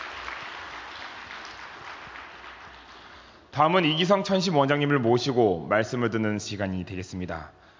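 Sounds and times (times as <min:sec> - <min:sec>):
audience applause for choir: 0:00.0 - 0:03.4
speech: 0:03.6 - 0:07.6.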